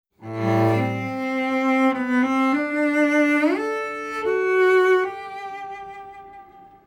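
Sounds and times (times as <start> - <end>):
cello: 0.2 - 6.8.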